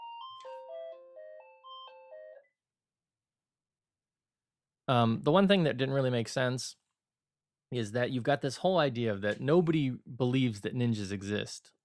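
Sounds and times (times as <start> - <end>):
phone ringing with melodic electronic ringtone: 0.0 - 2.6
speech: 4.9 - 6.8, 7.7 - 11.8.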